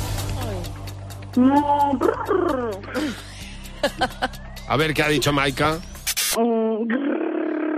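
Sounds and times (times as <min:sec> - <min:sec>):
speech: 0:01.4 - 0:07.2
person imitating a startled cow: 0:06.5 - 0:07.7.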